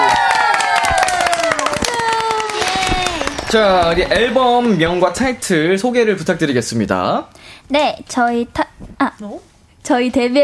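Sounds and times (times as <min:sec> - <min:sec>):
audience clapping: 0:00.0 - 0:05.2
speech: 0:03.5 - 0:10.4.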